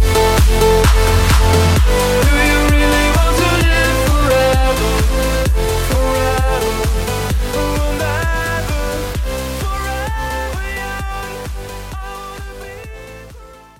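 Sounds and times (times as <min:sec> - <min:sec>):
music transition: 0:00.0 - 0:11.0.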